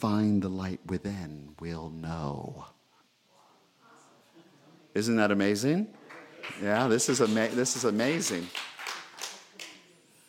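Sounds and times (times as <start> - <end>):
speech: 0.0 - 2.8, 5.0 - 8.7
audience applause: 6.1 - 9.8.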